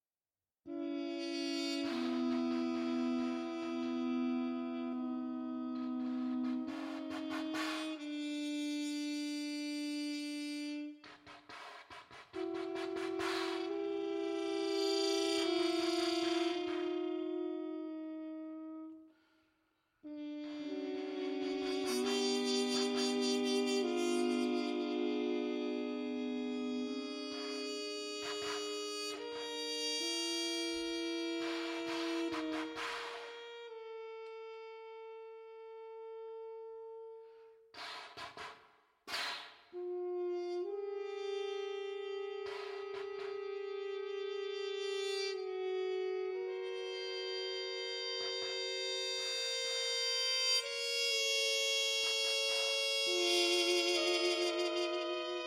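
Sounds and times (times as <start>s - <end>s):
slow horn fanfare: 0.7s - 19.4s, 20.0s - 37.4s, 39.7s - 55.4s.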